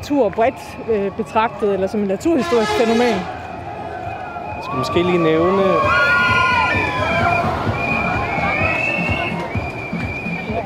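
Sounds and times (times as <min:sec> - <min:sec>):
speech: 0:00.1 - 0:03.4, 0:04.7 - 0:06.1
graduating students cheering and shouting outside: 0:00.2 - 0:10.6.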